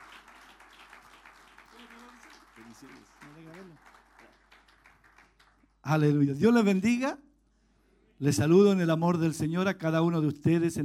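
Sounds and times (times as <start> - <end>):
audience applause: 0.0 - 5.8
speech: 2.6 - 4.0, 5.9 - 7.3, 8.2 - 10.8.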